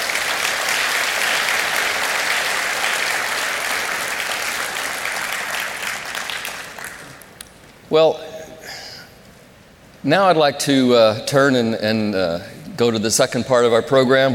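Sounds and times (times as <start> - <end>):
audience applause: 0.0 - 7.3
speech: 7.9 - 8.3, 10.0 - 14.3.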